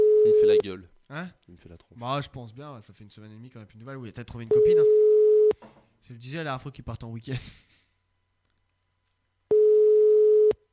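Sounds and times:
telephone busy signal tone: 0.0s - 0.6s, 4.5s - 5.6s, 9.5s - 10.6s
speech: 0.3s - 7.7s.

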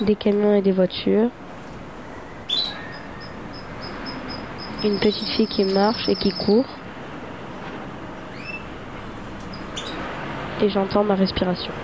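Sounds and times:
speech: 0.0s - 1.4s, 4.8s - 6.8s, 10.6s - 11.8s
birds chirping outdoors: 3.7s - 11.8s.

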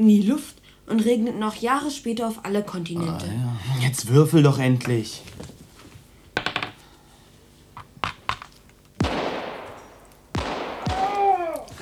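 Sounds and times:
speech: 0.0s - 5.5s
gunshots outside: 9.0s - 11.8s.

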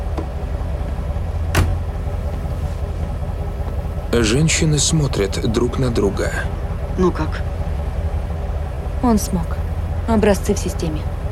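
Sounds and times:
black SUV engine rumbling as it pulls up and idles: 0.0s - 11.3s
speech: 4.1s - 7.5s, 9.0s - 11.1s.

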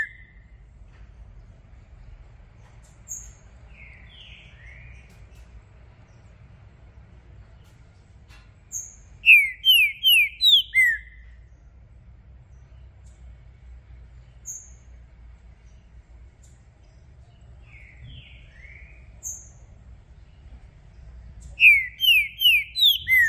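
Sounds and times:
Green-winged saltator whistling song: 0.0s - 0.5s, 8.7s - 11.4s, 14.4s - 14.8s, 17.6s - 19.6s, 21.4s - 23.2s.

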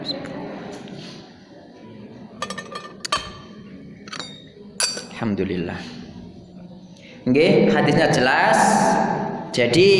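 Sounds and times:
glass clinking: 2.4s - 5.4s
speech: 5.2s - 6.0s, 7.3s - 9.0s, 9.6s - 9.9s.

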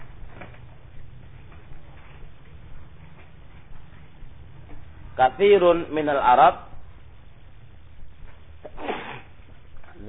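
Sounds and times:
low hum: 0.0s - 10.0s
speech: 5.2s - 6.7s
sneeze: 8.7s - 9.4s.

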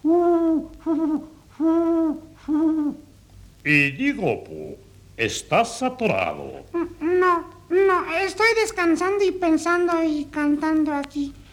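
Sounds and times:
owl hooting: 0.0s - 3.1s, 6.6s - 8.2s
speech: 3.6s - 7.0s, 8.0s - 11.4s.

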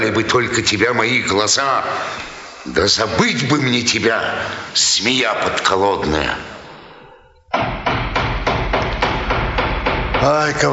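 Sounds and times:
speech: 0.0s - 6.5s, 10.2s - 10.7s
knocking on a door: 7.5s - 10.6s.

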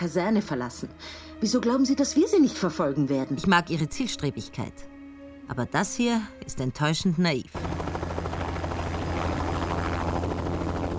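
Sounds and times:
speech: 0.0s - 4.9s, 5.5s - 7.8s
helicopter flying overhead: 7.5s - 10.9s.

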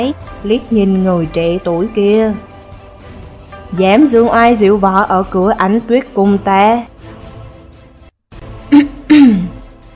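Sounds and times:
speech: 0.0s - 2.5s, 3.7s - 6.9s
light dry cough: 8.8s - 9.6s.

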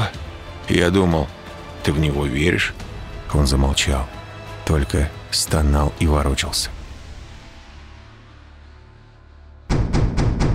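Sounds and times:
speech: 0.7s - 6.8s
loud insistent knocking on a door: 9.7s - 10.5s.

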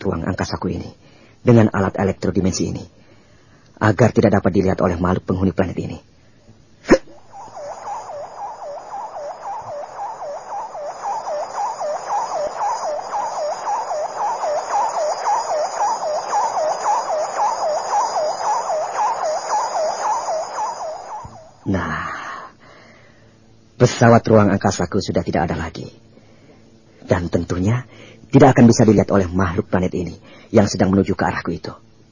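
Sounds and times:
speech: 0.0s - 3.0s, 3.8s - 6.1s, 24.0s - 26.0s, 27.4s - 31.8s
burst of noise: 6.8s - 22.4s
rapid warbling vehicle siren: 7.0s - 22.3s.

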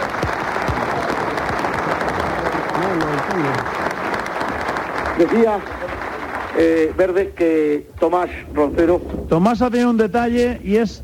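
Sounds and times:
audience applause: 0.0s - 7.6s
speech: 3.0s - 3.8s, 5.2s - 5.8s, 6.6s - 11.0s.

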